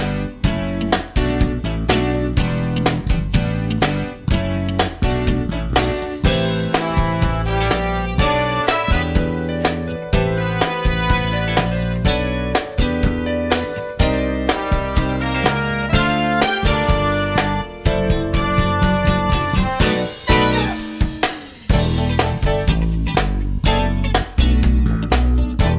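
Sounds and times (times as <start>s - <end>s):
electric bass playing for music education: 0.0s - 25.7s.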